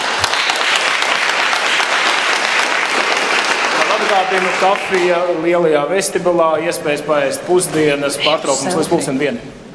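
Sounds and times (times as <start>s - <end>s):
crowd applause: 0.0s - 5.4s
speech: 4.0s - 9.6s.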